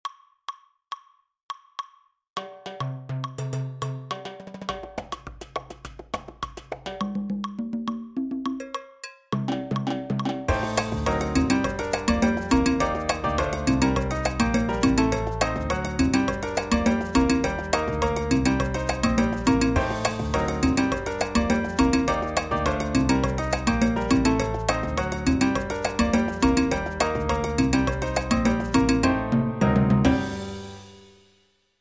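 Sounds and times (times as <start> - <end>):
Latin percussion: 2.4 - 31.3.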